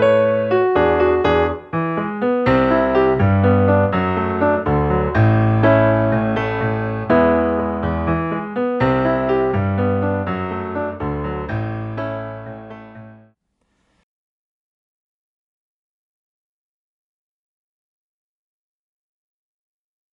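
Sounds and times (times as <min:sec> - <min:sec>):
musical accompaniment: 0:00.0 - 0:13.3.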